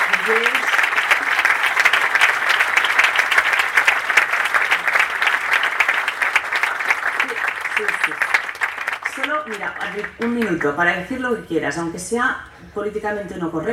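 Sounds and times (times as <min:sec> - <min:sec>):
audience applause: 0:00.0 - 0:10.6
speech: 0:00.3 - 0:00.7, 0:09.6 - 0:13.7.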